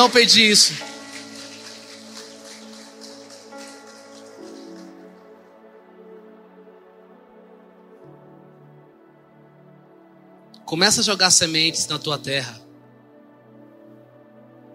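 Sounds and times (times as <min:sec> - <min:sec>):
speech: 0:00.0 - 0:00.9, 0:10.7 - 0:12.6
audience applause: 0:00.0 - 0:05.4.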